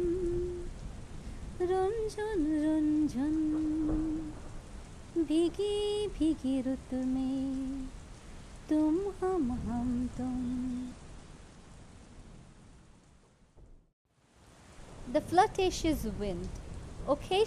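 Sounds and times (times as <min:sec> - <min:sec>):
heavy rain downpour: 0:00.0 - 0:13.6, 0:14.2 - 0:17.4
speech: 0:02.1 - 0:04.0, 0:05.2 - 0:08.0, 0:08.7 - 0:11.0, 0:15.1 - 0:17.4.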